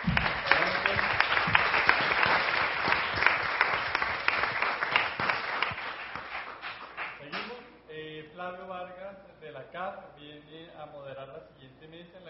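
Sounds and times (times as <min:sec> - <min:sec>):
audience applause: 0:00.0 - 0:07.2.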